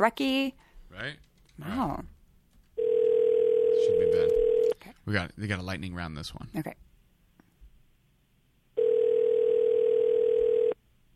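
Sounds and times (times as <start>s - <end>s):
speech: 0.0s - 2.1s, 3.8s - 6.8s
telephone dial tone after hang-up: 2.8s - 4.8s, 8.8s - 10.8s.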